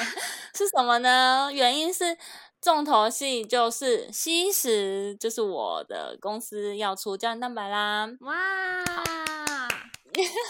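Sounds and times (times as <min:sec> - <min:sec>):
speech: 0:00.6 - 0:10.4
hand clapping: 0:08.8 - 0:10.4.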